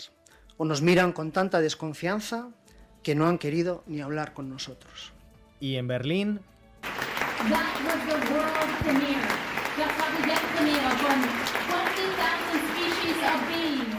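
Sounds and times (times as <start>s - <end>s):
speech: 0.0s - 6.5s, 7.4s - 11.5s
standing ovation applause at Berlin film premiere: 6.8s - 13.9s.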